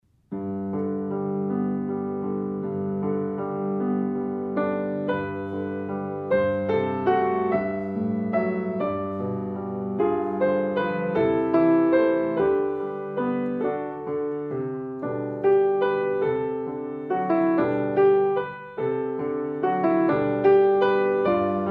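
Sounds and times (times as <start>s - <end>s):
solo piano: 0.0s - 21.7s.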